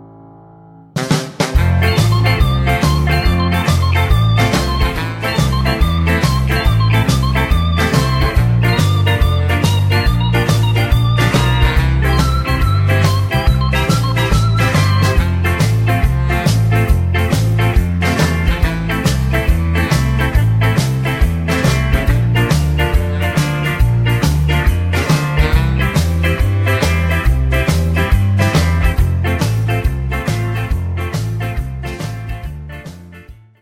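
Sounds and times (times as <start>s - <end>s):
backing track in F: 0.9s - 33.4s.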